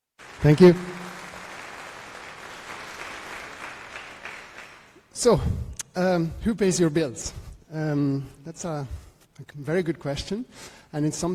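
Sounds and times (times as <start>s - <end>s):
audience applause: 0.0s - 5.1s
speech: 0.4s - 0.9s, 5.2s - 11.3s.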